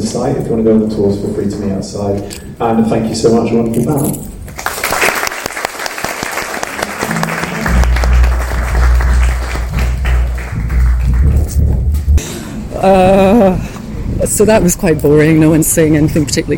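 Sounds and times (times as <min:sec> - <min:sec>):
speech: 0:00.1 - 0:04.3, 0:12.8 - 0:13.6, 0:14.2 - 0:16.5
audience applause: 0:04.6 - 0:12.0
rising-and-falling warbling tone: 0:06.8 - 0:12.2
low sustained hum: 0:06.9 - 0:13.3.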